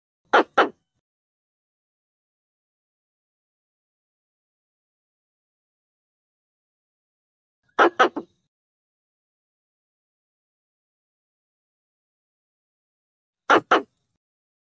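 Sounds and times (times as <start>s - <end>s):
Pallas's squirrel rasping chatter bursts: 0.3s - 0.9s, 7.7s - 8.5s, 13.5s - 14.0s.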